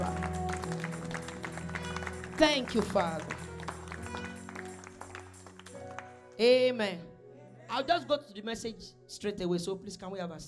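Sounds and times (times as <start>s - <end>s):
audience applause: 0.0s - 6.2s
speech: 2.4s - 3.3s, 6.4s - 7.1s, 7.7s - 10.4s.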